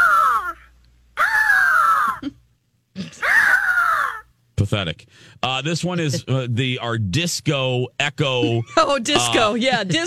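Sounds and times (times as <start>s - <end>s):
eagle calls imitated by a human voice: 0.0s - 2.4s, 3.0s - 4.3s
speech: 4.7s - 10.0s.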